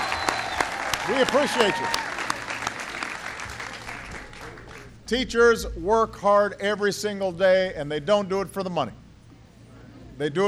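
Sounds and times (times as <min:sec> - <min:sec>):
audience applause for the teachers: 0:00.0 - 0:05.0
speech: 0:01.1 - 0:02.1, 0:05.1 - 0:09.0, 0:10.2 - 0:10.4.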